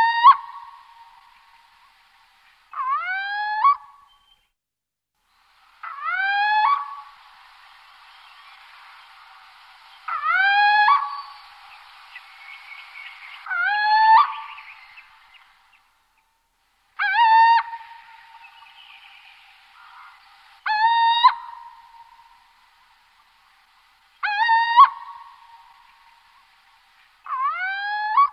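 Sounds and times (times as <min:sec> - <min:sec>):
little owl territorial call: 0:00.0 - 0:02.0, 0:02.7 - 0:04.4, 0:05.8 - 0:07.5, 0:10.0 - 0:15.8, 0:17.0 - 0:23.0, 0:23.8 - 0:28.3.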